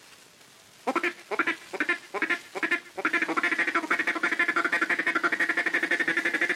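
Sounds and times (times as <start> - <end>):
duck call blown in a mating-call pattern: 0.8 - 6.5.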